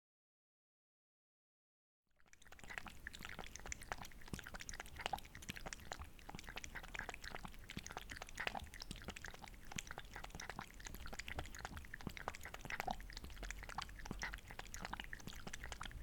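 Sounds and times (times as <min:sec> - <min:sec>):
cat lapping water: 0:02.2 - 0:16.0.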